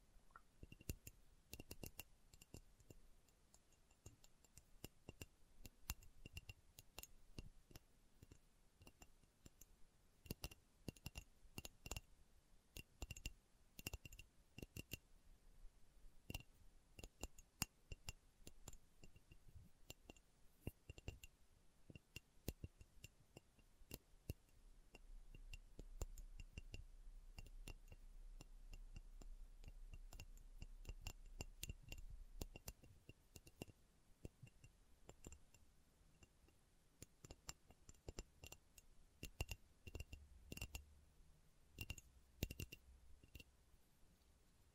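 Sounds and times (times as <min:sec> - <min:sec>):
slow tapping: 0:00.0 - 0:12.1, 0:12.7 - 0:15.1, 0:16.0 - 0:41.0, 0:41.7 - 0:44.7
quiet steady hiss: 0:00.0 - 0:44.7.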